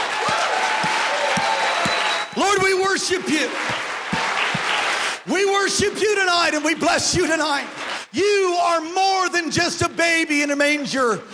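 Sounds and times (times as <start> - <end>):
audience clapping hands: 0.0 - 8.8
speech: 2.4 - 3.8, 5.3 - 11.3.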